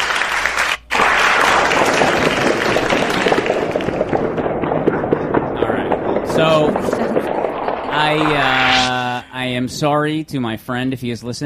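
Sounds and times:
crowd applause: 0.0 - 9.1
speech: 6.4 - 6.9, 8.0 - 8.5, 9.4 - 11.4.

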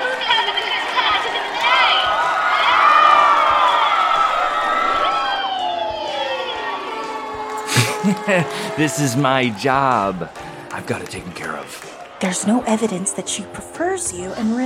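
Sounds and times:
crowd cheering wildly at concert: 0.0 - 13.4
laughter: 7.4 - 11.1
speech: 8.1 - 14.6.

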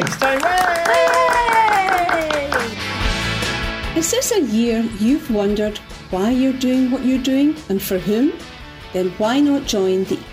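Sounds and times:
applause: 0.0 - 3.1
speech: 4.0 - 10.3.

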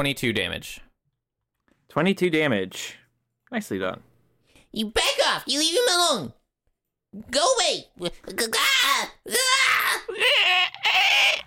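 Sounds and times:
speech: 0.0 - 0.9, 1.9 - 4.1, 4.7 - 6.4, 7.1 - 11.0
voice imitating a baby creature shrieking: 8.2 - 11.4.

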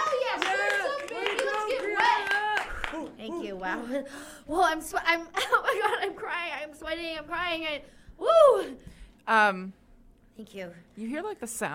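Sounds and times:
furious hand clapping off stage: 0.0 - 3.2
speech: 3.6 - 9.8, 10.4 - 11.7.

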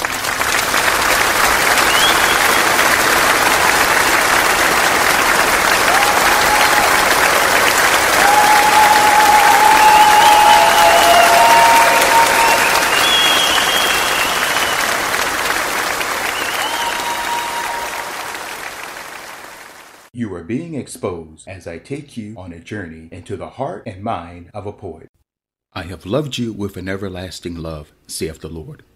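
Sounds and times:
audience applause: 0.0 - 20.1
faint whistles: 1.8 - 2.8, 9.6 - 15.0, 16.2 - 18.1
speech: 20.5 - 28.9.

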